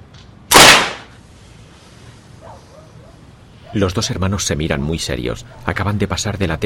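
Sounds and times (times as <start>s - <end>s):
gunshot: 0.5s - 1.1s
speech: 3.7s - 6.6s.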